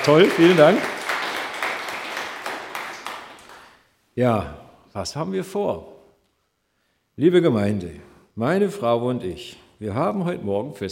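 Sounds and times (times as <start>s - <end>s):
speech: 0.0s - 0.9s, 4.2s - 5.9s, 7.2s - 10.9s
church congregation clapping for the choir: 0.0s - 3.9s.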